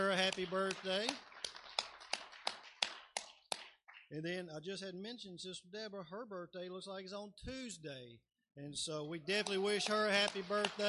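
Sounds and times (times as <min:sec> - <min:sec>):
speech: 0:00.0 - 0:01.3, 0:04.1 - 0:10.8
audience clapping for a birthday: 0:00.0 - 0:04.4, 0:09.3 - 0:10.8.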